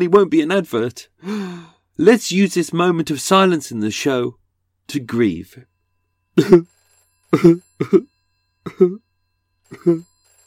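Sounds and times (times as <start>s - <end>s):
speech: 0.0s - 5.7s, 6.4s - 9.0s, 9.7s - 10.1s
1980s style landline telephone ringing sound effect: 4.9s - 10.4s.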